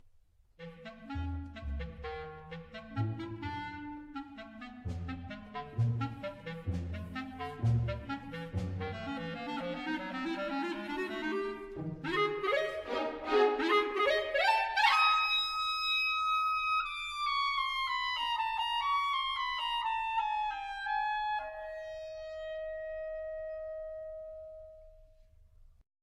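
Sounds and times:
clarinet: 0.6s - 25.4s.

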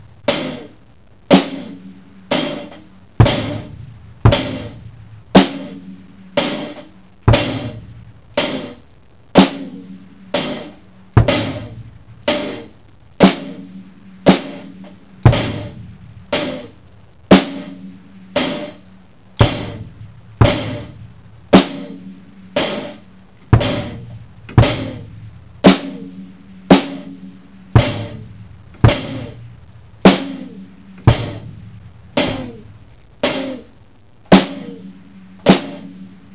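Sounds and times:
drum fills: 0.0s - 36.3s.

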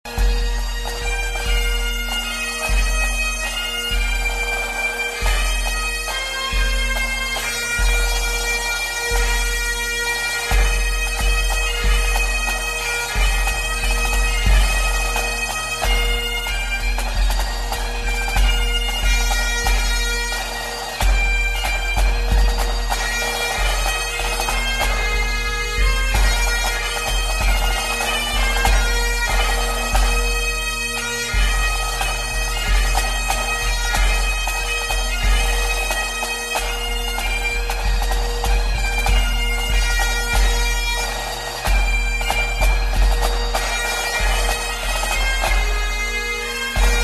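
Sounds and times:
Scottish bagpipe melody: 0.0s - 47.0s.

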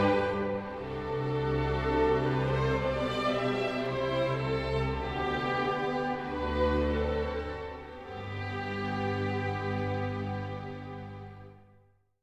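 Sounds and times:
violin playing a national anthem: 0.0s - 11.7s.

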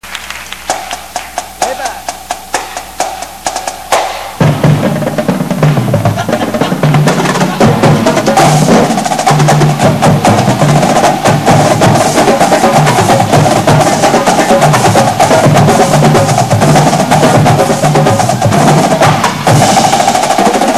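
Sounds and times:
music beat: 0.3s - 20.7s
laughter: 6.0s - 8.4s.

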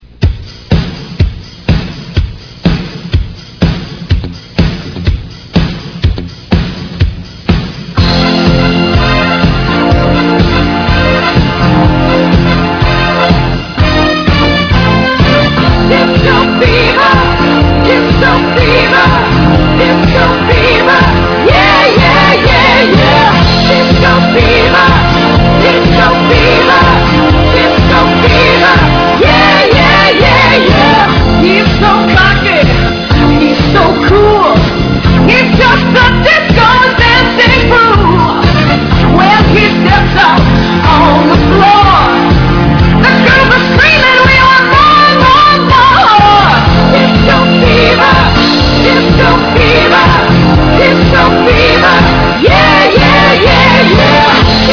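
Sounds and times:
disco music: 0.0s - 54.7s.

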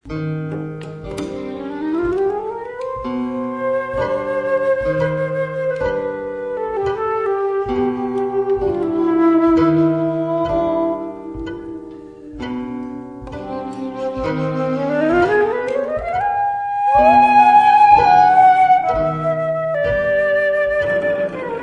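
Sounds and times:
flute waltz: 0.5s - 21.6s.

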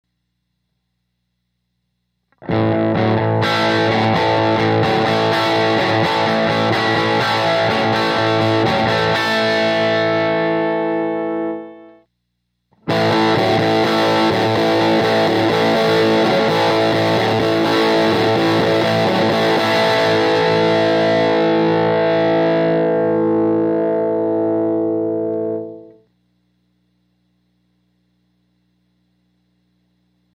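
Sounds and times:
Vibrochamp guitar amplifier: 2.2s - 12.1s, 12.7s - 26.2s.

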